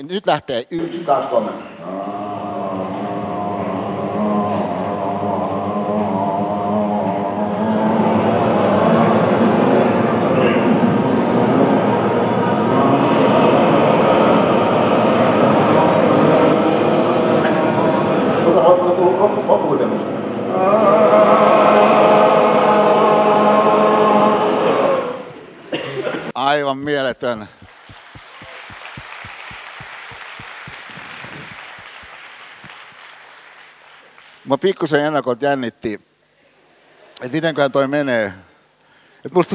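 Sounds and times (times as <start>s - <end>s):
speech: 0.0s - 2.0s, 26.6s - 27.6s, 34.5s - 36.1s, 37.2s - 38.5s, 39.2s - 39.5s
group droning Gregorian-style vocal chant: 1.3s - 26.3s.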